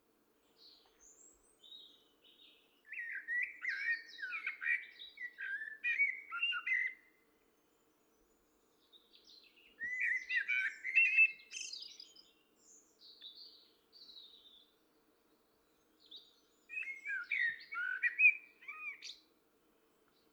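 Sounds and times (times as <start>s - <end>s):
common blackbird singing: 0.6s - 7.0s, 8.8s - 14.7s, 16.0s - 19.2s.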